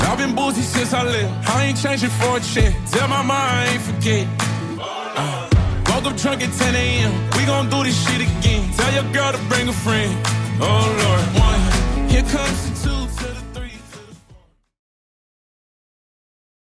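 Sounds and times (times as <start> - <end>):
Top40 pop drum beat at 82bpm: 0.0 - 4.6, 5.5 - 14.5.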